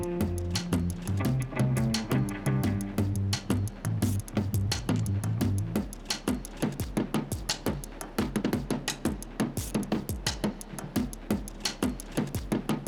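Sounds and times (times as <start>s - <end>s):
guitar sketch: 0.0s - 3.4s
drums: 0.0s - 12.8s.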